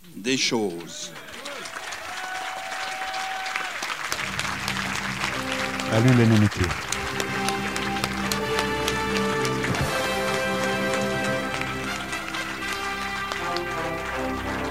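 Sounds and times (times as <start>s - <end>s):
speech: 0.2s - 1.2s, 5.9s - 6.9s
audience applause: 0.9s - 14.6s
sustained musical tones: 4.2s - 14.6s.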